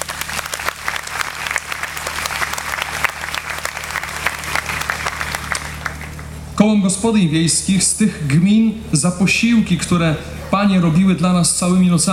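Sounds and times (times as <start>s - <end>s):
large audience thunderous applause: 0.0s - 6.4s
faint low electrical hum: 0.0s - 12.1s
speech: 6.6s - 12.1s.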